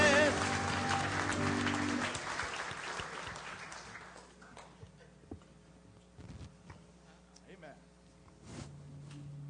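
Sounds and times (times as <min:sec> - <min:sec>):
audience hand clapping: 0:00.0 - 0:04.8.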